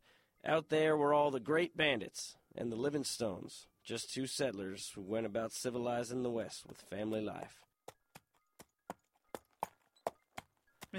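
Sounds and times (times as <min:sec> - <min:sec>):
speech: 0:00.4 - 0:07.7
horse hooves clip-clopping: 0:06.4 - 0:10.9.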